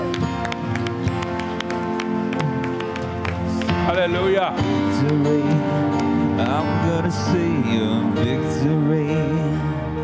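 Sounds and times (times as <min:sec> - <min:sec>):
audience clapping: 0:00.0 - 0:06.6
speech: 0:04.0 - 0:05.8, 0:06.4 - 0:09.7.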